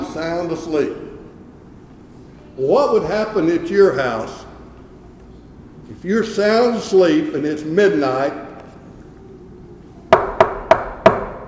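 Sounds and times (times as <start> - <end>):
faint low hum: 0.0 - 11.4
speech: 0.2 - 1.2, 2.6 - 4.4, 5.9 - 8.4
knocking on a wooden door at night: 10.1 - 11.4.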